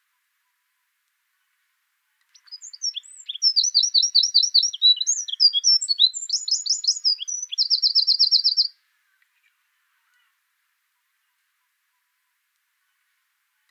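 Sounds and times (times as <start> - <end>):
Eurasian wren song: 2.3 - 8.8.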